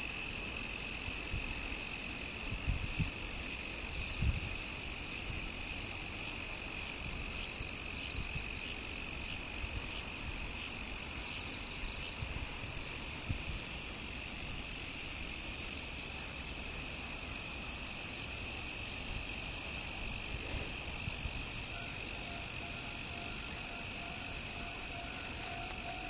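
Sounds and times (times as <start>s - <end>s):
crickets chirping chorus: 0.0s - 26.0s.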